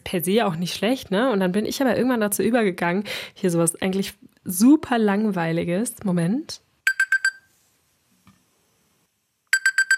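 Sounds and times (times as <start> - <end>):
speech: 0.1 - 6.6
classic alarm clock ringtone from smartphone: 6.9 - 7.5, 9.5 - 9.9.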